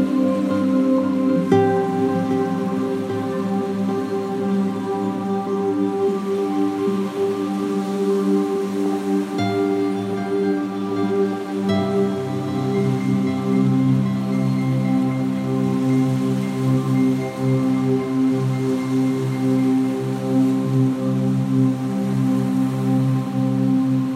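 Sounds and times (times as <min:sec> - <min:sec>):
soft nylon guitar melody: 0:00.0 - 0:05.9, 0:09.4 - 0:15.7
sustained sweeping pads: 0:00.0 - 0:21.4
waves of the Irish sea lapping on the beach: 0:00.0 - 0:24.0.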